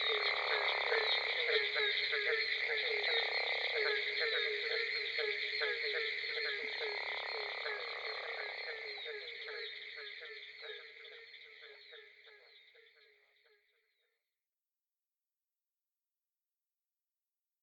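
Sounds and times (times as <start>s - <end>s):
Barking Treefrog calling: 0.0s - 13.7s
Gopher Frog calling: 0.0s - 13.7s.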